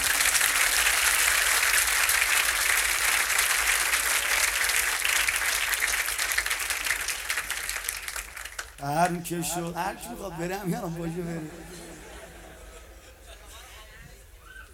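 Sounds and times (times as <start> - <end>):
clapping: 0.0 - 9.2
speech: 8.8 - 11.8
laughter: 8.9 - 14.3.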